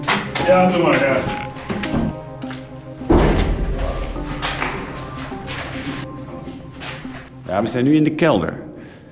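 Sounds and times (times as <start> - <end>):
speech: 0.5 - 2.0, 7.5 - 8.7
door being shut with a thud: 3.1 - 3.9.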